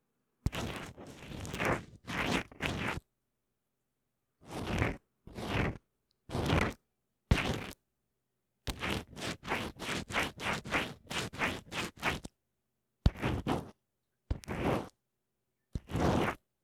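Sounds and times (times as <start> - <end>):
wet cotton swab: 0.5 - 3.0, 4.4 - 7.8, 8.7 - 12.3, 13.1 - 15.0.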